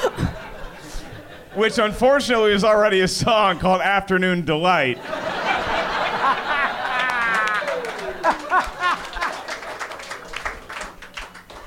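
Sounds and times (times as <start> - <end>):
comedy audience laughing at a joke: 0.0 - 2.7, 4.9 - 11.6
speech: 1.6 - 5.2
comedy audience clapping at a joke: 6.1 - 11.6.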